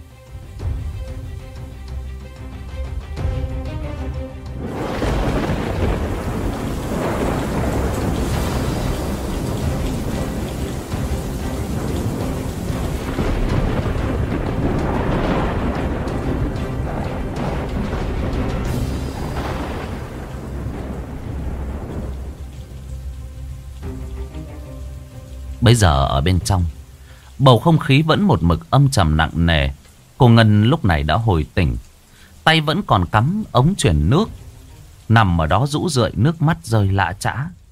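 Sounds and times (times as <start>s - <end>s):
rain: 0.0s - 37.7s
thunder: 4.5s - 23.1s
speech: 25.7s - 26.8s, 27.4s - 31.8s, 32.4s - 34.4s, 35.1s - 37.6s.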